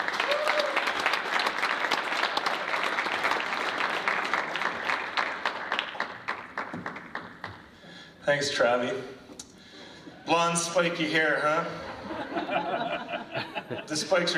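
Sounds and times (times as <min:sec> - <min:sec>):
audience applause welcoming a speaker to the stage: 0:00.0 - 0:07.7
speech: 0:08.3 - 0:09.2, 0:10.3 - 0:12.8, 0:13.9 - 0:14.3
laughter: 0:11.8 - 0:14.3.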